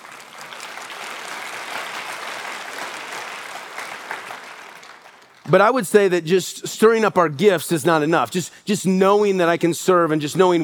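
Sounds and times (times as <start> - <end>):
audience applause: 0.0 - 5.6
speech: 5.5 - 10.6.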